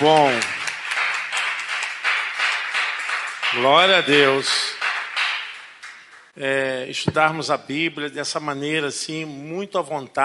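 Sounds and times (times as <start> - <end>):
speech: 0.0 - 0.6, 3.5 - 4.8, 6.4 - 10.2
audience applause: 0.0 - 6.3.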